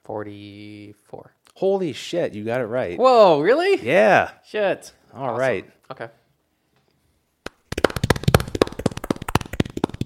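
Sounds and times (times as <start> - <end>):
speech: 0.1 - 6.2
golf clap, light polite clapping: 7.4 - 10.0.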